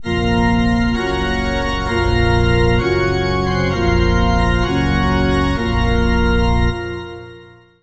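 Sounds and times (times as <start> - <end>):
funeral march music: 0.0 - 7.8.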